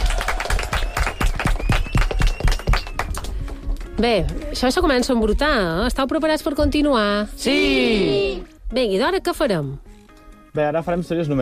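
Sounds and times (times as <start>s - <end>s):
audience applause: 0.0s - 3.4s
speech: 4.0s - 9.8s, 10.6s - 11.4s.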